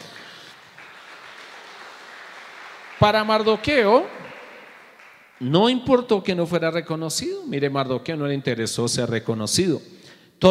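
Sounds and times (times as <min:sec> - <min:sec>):
audience applause: 0:00.0 - 0:05.8
speech: 0:03.0 - 0:04.2, 0:05.4 - 0:10.5.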